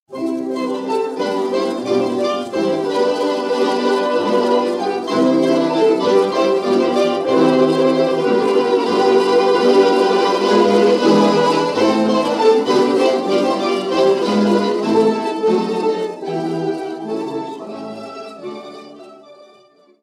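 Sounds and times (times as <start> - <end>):
Macedonian folk dance tune: 0.1 - 19.9.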